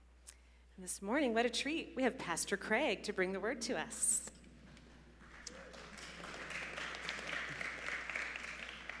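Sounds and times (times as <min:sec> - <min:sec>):
speech: 0:00.8 - 0:04.4
light smattering of applause: 0:05.2 - 0:08.9.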